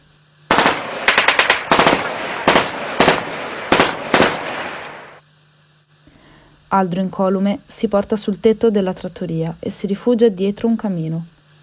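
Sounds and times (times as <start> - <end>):
submachine gun fire: 0.5 - 5.2
speech: 6.7 - 11.4.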